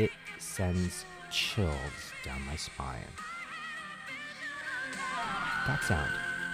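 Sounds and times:
speech: 0.0 - 3.3, 4.9 - 6.3
whistle-register singing note: 4.9 - 6.5.

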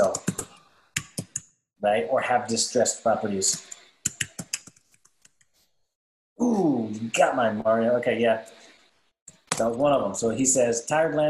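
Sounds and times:
typing on a computer keyboard: 0.0 - 1.4, 3.6 - 5.1
speech: 1.8 - 3.8, 6.4 - 8.6, 9.6 - 11.2.

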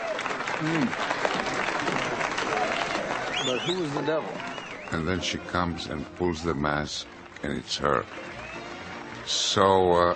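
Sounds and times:
audience applauding: 0.0 - 10.1
speech: 0.6 - 1.1, 3.4 - 8.3, 9.3 - 10.1.

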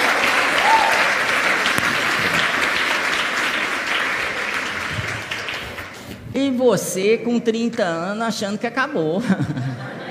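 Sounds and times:
audience applause: 0.0 - 6.1
speech: 6.4 - 9.7
laughter: 9.2 - 10.0.

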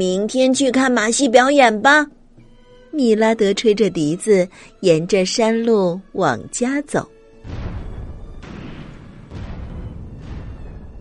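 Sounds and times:
speech: 0.0 - 2.2, 2.9 - 7.6
distant artillery cannon fire: 7.4 - 10.9.

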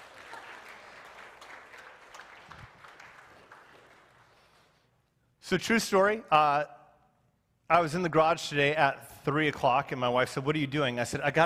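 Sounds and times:
crowd applauding: 0.0 - 4.8
speech: 5.5 - 6.8, 7.7 - 11.4.

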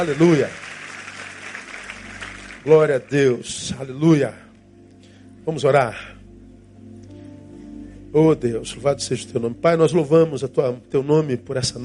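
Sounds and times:
speech: 0.0 - 0.6, 2.6 - 4.4, 5.5 - 6.1, 8.1 - 11.8
audience applauding: 0.0 - 3.5.

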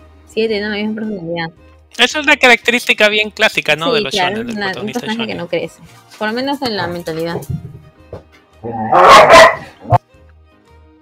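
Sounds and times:
speech: 0.4 - 7.7, 8.6 - 10.0
small dogs barking: 8.7 - 10.0.

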